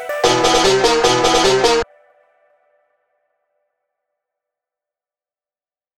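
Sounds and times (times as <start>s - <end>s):
abnormal dubstep music: 0.3s - 1.9s.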